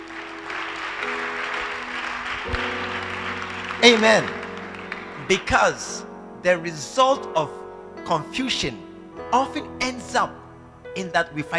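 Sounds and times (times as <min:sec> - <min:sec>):
audience applause: 0:00.0 - 0:05.5
speech: 0:03.8 - 0:04.4, 0:05.3 - 0:10.4, 0:11.0 - 0:11.5.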